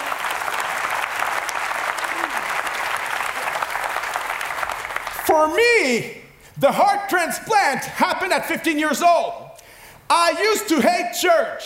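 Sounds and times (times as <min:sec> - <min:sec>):
audience clapping: 0:00.0 - 0:05.4
speech: 0:05.3 - 0:09.4, 0:10.1 - 0:11.6.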